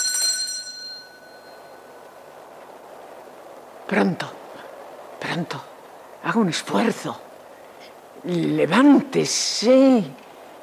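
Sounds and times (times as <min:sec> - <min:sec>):
small bell ringing: 0:00.0 - 0:01.9
speech: 0:03.9 - 0:04.4, 0:05.2 - 0:07.3, 0:08.2 - 0:10.2.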